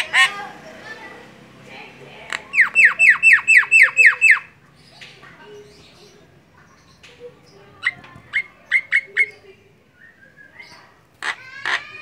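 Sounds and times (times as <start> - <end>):
Javan myna singing with clicks and chattering notes: 2.2 - 9.4.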